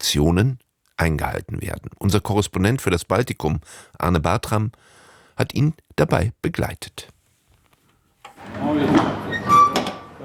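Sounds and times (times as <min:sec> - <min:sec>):
speech: 0:00.1 - 0:07.1, 0:08.4 - 0:09.6
truck driver opening cargo hold door: 0:08.3 - 0:10.2.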